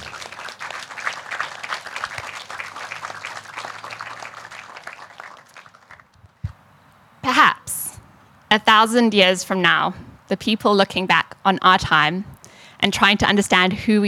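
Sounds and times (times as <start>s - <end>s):
audience applause: 0.0s - 6.2s
speech: 8.5s - 14.0s.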